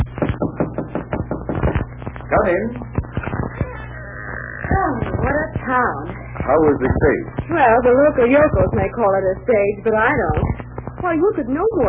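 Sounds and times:
knocking on a hotel room door: 0.2s - 1.8s
speech: 2.4s - 2.9s, 4.9s - 11.8s.

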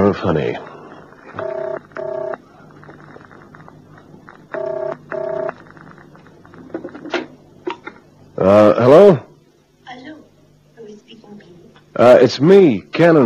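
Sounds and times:
speech: 0.1s - 0.7s, 8.5s - 9.0s, 12.0s - 13.2s
telephone being dialed: 1.4s - 2.4s, 4.5s - 5.6s.

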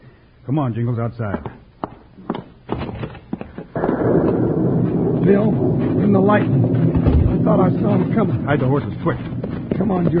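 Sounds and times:
speech: 0.5s - 1.6s, 5.3s - 10.1s
thunderclap of an approaching storm: 3.7s - 10.1s.

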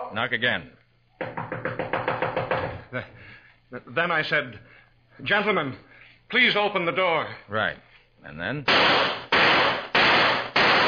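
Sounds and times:
speech: 0.1s - 1.6s, 2.9s - 9.3s
sharp loud gunshots: 8.7s - 10.8s.

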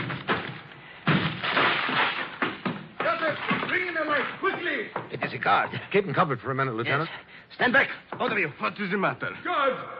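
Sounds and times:
door being broken down with heavy thuds and splintering crashes: 0.0s - 5.1s
speech: 4.7s - 9.9s.

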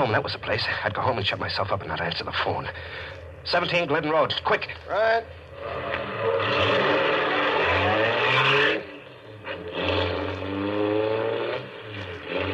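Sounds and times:
speech: 0.0s - 6.8s
car engine revving and pulling away: 5.3s - 12.5s.

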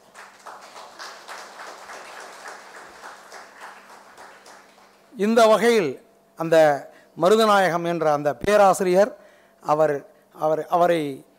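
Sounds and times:
audience applause: 0.0s - 5.1s
speech: 5.2s - 11.3s.

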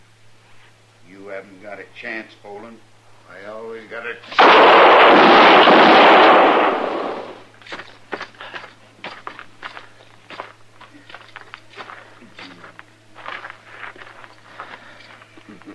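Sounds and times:
speech: 1.3s - 6.2s
gunfire in a western radio drama: 4.3s - 7.5s.

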